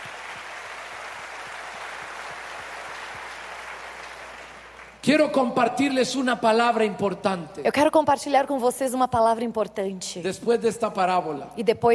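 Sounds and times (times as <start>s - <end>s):
audience applause: 0.0s - 5.0s
speech: 5.0s - 11.9s.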